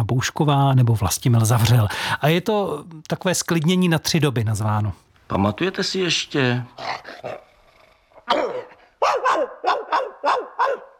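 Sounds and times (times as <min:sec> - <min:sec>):
speech: 0:00.0 - 0:07.5, 0:08.3 - 0:10.9
dog barking: 0:08.3 - 0:10.9.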